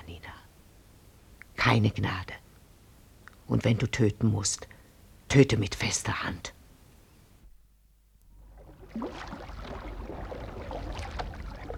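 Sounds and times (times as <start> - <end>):
speech: 1.7 - 2.4, 3.5 - 6.6
canoe pushed out into river water: 8.3 - 11.7.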